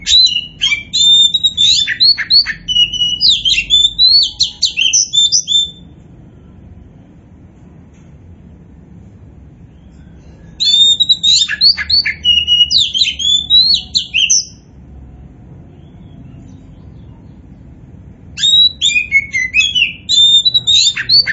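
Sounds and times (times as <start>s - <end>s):
Oriental magpie-robin song: 0.0s - 5.8s, 9.8s - 14.7s, 18.4s - 21.3s.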